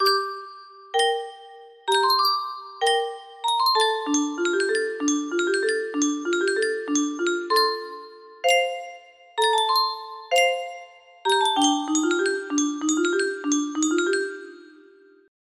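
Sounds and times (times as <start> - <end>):
music box melody: 0.0 - 15.3.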